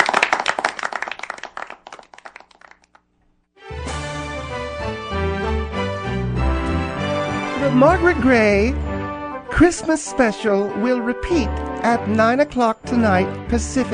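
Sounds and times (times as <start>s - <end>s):
audience applauding at the close of a televised Christmas special: 0.0s - 3.0s
music: 3.6s - 13.9s
speech: 7.7s - 8.8s, 9.6s - 13.9s.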